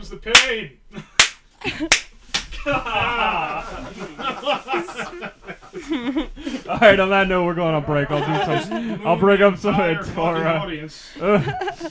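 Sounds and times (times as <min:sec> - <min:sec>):
speech: 0:00.1 - 0:00.9, 0:01.6 - 0:11.9
spanking slaps: 0:00.3 - 0:00.6, 0:01.2 - 0:02.8
people laughing: 0:01.0 - 0:07.2, 0:07.9 - 0:11.9.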